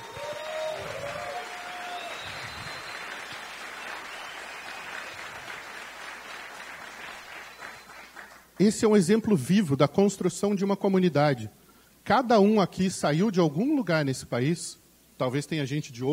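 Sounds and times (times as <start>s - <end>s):
audience applause: 0.0s - 8.6s
speech: 8.6s - 16.1s.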